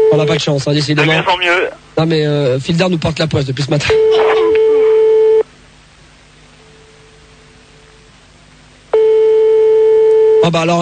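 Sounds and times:
faint hum: 0.0 - 10.8
speech: 0.2 - 4.4, 10.5 - 10.8
telephone ringing unanswered, ringback tone on the line: 4.0 - 5.4, 9.0 - 10.4.

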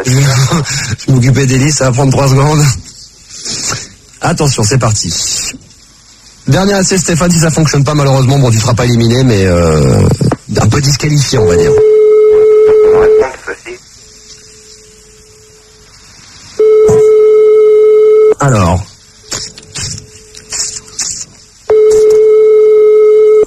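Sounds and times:
speech: 0.0 - 5.6, 6.5 - 11.9, 18.4 - 18.9
telephone ringing tone: 11.8 - 13.3, 16.6 - 18.4, 21.7 - 23.4.

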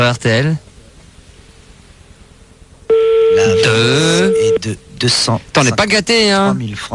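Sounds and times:
speech: 0.0 - 0.6, 3.4 - 6.9
telephone ringing on outgoing call: 2.9 - 4.6.

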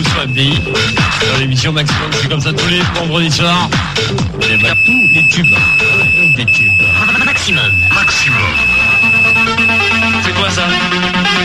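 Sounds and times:
loud electronic ringtone: 0.0 - 1.6, 4.4 - 10.4
speech: 0.2 - 11.4.

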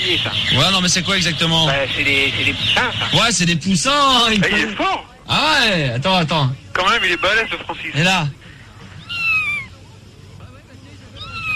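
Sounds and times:
speech: 0.1 - 8.4
toad calling: 8.9 - 9.8, 11.2 - 11.5.

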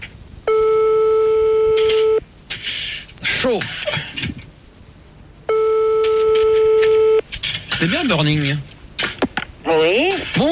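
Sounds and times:
telephone ringing tone: 0.5 - 2.2, 5.5 - 7.2
speech: 3.4 - 4.3, 7.8 - 8.7, 9.7 - 10.5.

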